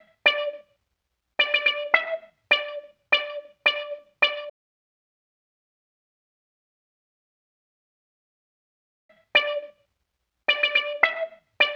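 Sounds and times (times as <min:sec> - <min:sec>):
wah synth: 0:00.0 - 0:00.7, 0:01.4 - 0:04.5, 0:09.2 - 0:09.8, 0:10.5 - 0:11.7.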